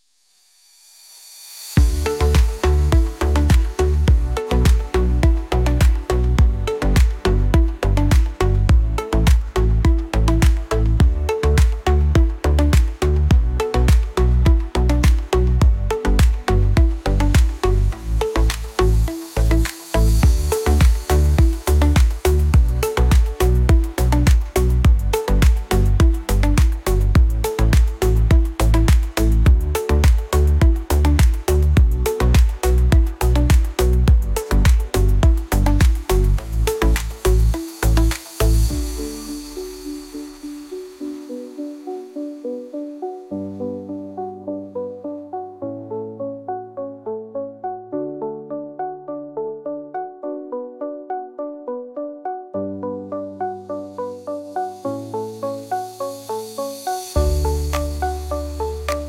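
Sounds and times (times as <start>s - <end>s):
synthwave music: 1.8s - 59.0s.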